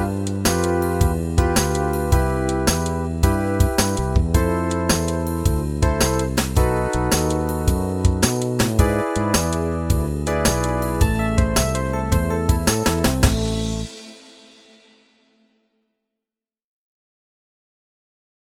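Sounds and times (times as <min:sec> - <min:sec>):
guitar: 0:00.0 - 0:14.2.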